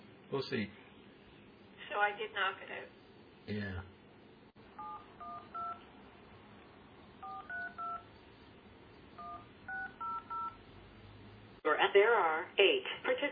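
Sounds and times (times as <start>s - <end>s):
steady low hum: 0.0s - 13.3s
speech: 0.3s - 0.8s, 2.0s - 4.0s, 11.8s - 13.3s
telephone keypad dialing tones: 4.8s - 5.8s, 7.2s - 8.0s, 9.2s - 10.6s.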